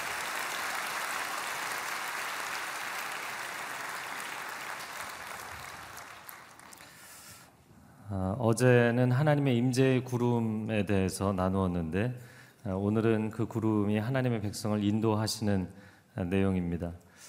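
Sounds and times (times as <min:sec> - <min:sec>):
audience applauding: 0:00.0 - 0:07.0
speech: 0:08.1 - 0:17.2.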